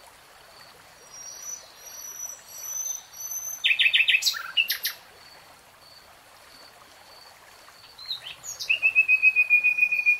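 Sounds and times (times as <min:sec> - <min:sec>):
nightingale song: 0:01.1 - 0:05.0, 0:07.9 - 0:10.1.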